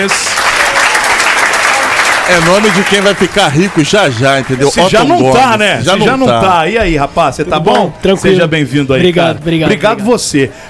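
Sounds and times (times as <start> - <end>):
speech: 0.0 - 0.6, 2.3 - 10.6
audience applause for guest: 0.0 - 5.6.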